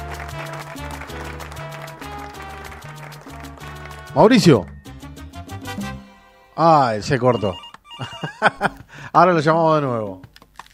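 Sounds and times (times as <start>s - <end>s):
studio audience applause: 0.0s - 4.6s
loud backing music with stepping bass notes: 0.0s - 6.5s
speech: 4.2s - 4.7s, 6.6s - 10.3s
laughter: 7.3s - 8.9s.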